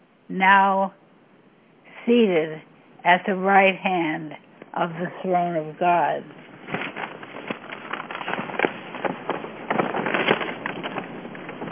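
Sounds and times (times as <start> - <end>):
speech: 0.3 - 1.0, 2.1 - 6.8
paper crackling as a page is turned: 6.4 - 11.7.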